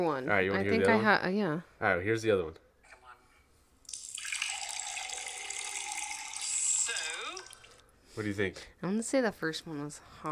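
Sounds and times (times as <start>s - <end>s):
speech: 0.0s - 2.6s, 8.2s - 10.2s
cold water being poured: 3.8s - 7.9s.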